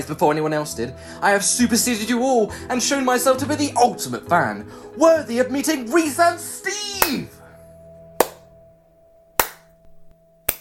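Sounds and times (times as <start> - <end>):
speech: 0.0 - 7.4
one person clapping hands: 7.0 - 7.2, 8.2 - 8.5, 9.4 - 9.7.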